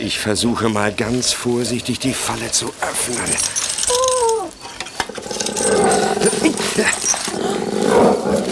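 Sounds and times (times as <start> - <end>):
speech: 0.0 - 3.7, 6.2 - 7.2
dog whining: 3.2 - 8.5
dog growling: 4.5 - 8.5.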